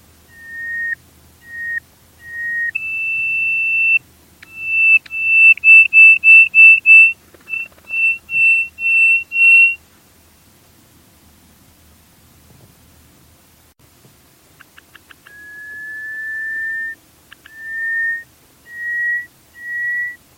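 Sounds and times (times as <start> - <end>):
bird whistling: 0.3 - 9.8, 14.7 - 20.2.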